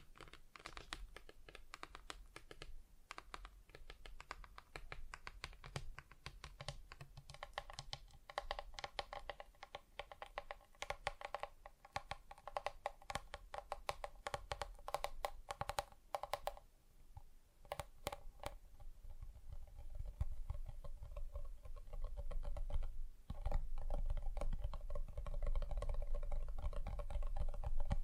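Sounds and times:
fingers tapping on different surfaces: 0.0 - 16.6, 17.6 - 28.0.

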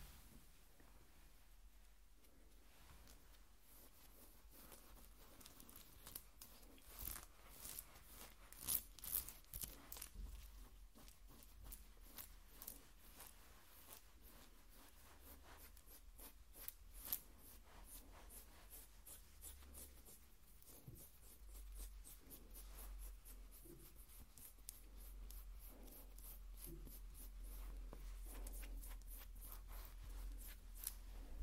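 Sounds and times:
skin scratching: 3.0 - 31.4.

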